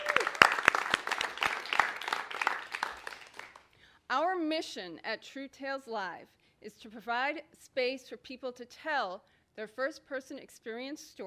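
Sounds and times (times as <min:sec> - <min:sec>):
audience applauding at a live storytelling event in Portsmouth: 0:00.0 - 0:03.7
speech: 0:04.1 - 0:11.2.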